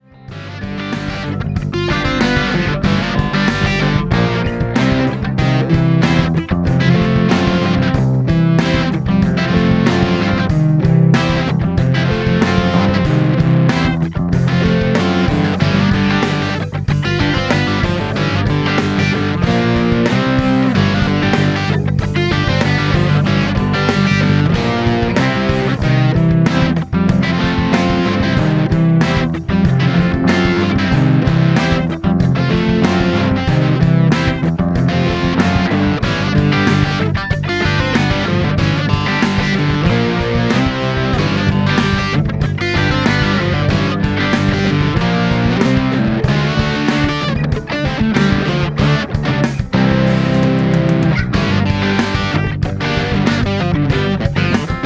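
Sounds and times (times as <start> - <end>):
musical riff sketch: 0.0 - 54.8.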